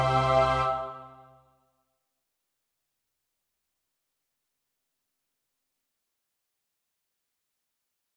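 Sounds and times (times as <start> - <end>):
SATB choir part practice: 0.0 - 1.4.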